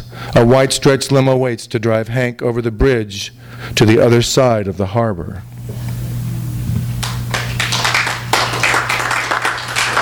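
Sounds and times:
speech: 0.4 - 5.8
audience applause: 7.0 - 10.0.

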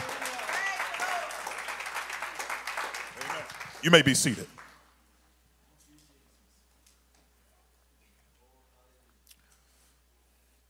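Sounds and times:
audience clapping: 0.0 - 4.9
speech: 3.8 - 4.6.

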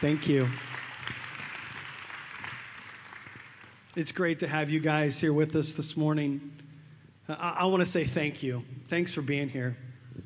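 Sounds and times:
speech: 0.0 - 0.7, 4.0 - 6.6, 7.3 - 9.8
audience applause at a morning gathering: 0.0 - 3.9.

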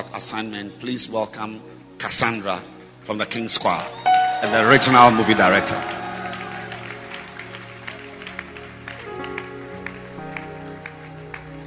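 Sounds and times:
speech: 0.2 - 6.0
audience applause: 4.1 - 11.6.

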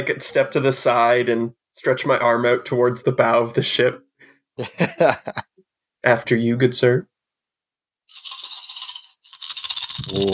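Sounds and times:
speech: 0.0 - 7.1, 8.1 - 8.3, 10.1 - 10.3
laughter: 4.6 - 5.5
dice rolling: 8.1 - 10.3.

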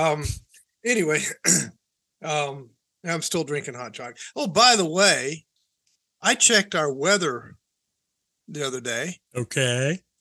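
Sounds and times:
speech: 0.0 - 5.5, 6.2 - 7.6, 8.5 - 10.1
person coughing and clearing throat after hot chocolate went down the windpipe: 1.2 - 1.8.

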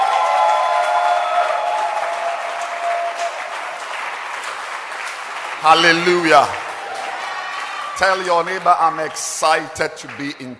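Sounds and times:
audience clapping: 0.0 - 10.5
speech: 5.6 - 6.6, 8.0 - 10.5.

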